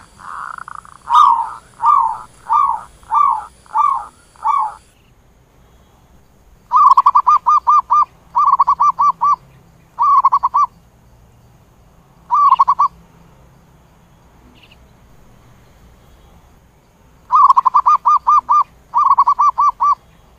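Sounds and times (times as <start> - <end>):
zebra dove cooing: 0.0 - 4.9, 6.7 - 9.4, 10.0 - 10.7, 12.3 - 12.9, 17.3 - 20.0.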